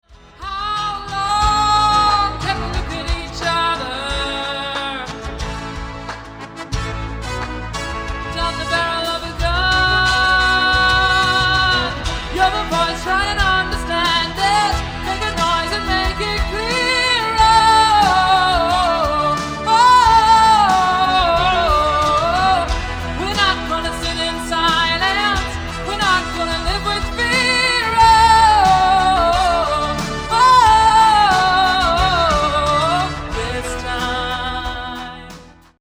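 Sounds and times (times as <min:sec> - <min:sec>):
chorus singing: 0:00.2 - 0:35.7.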